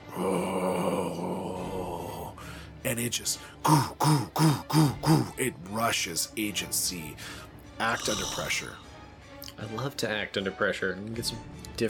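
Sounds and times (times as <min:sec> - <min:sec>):
voice imitating monster growl: 0:00.1 - 0:02.3
speech: 0:02.8 - 0:08.9, 0:09.6 - 0:11.8.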